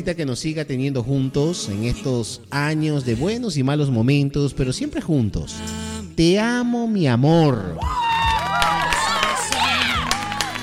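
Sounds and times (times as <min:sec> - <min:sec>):
speech: 0:00.0 - 0:08.0
crowd clapping: 0:07.9 - 0:10.6.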